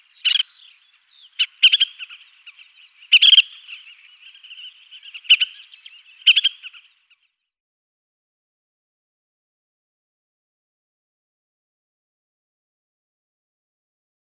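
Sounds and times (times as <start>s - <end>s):
collared pratincole calls: 0.0s - 7.3s.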